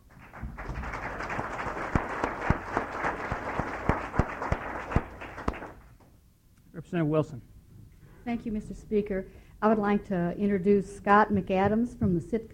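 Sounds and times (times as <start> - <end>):
round of applause: 0.0 - 5.9
speech: 6.8 - 7.5, 8.2 - 12.5.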